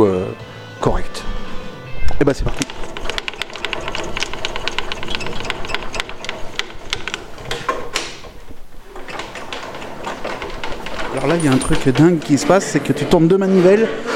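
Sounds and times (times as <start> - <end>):
speech: 2.2 - 2.8, 11.3 - 14.1
circular saw cutting wood: 2.5 - 8.4, 10.7 - 14.1.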